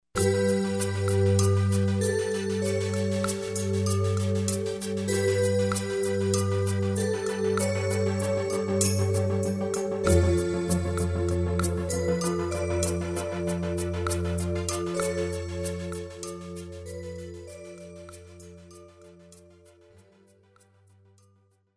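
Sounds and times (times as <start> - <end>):
soundtrack demo music: 0.2 - 16.8.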